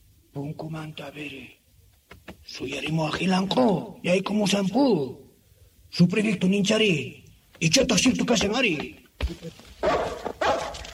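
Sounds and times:
speech: 0:00.4 - 0:01.6, 0:02.5 - 0:05.2, 0:05.9 - 0:10.1
dogs barking: 0:09.8 - 0:10.9.

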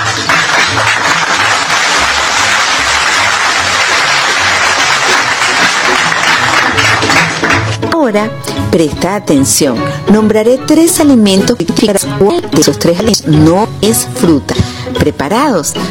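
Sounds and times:
applause: 0:00.0 - 0:07.8
speech: 0:08.1 - 0:15.8.

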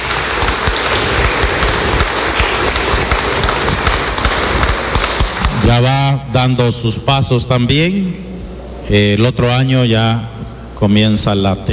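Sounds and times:
crowd applauding: 0:00.0 - 0:06.0
speech: 0:05.7 - 0:11.7.

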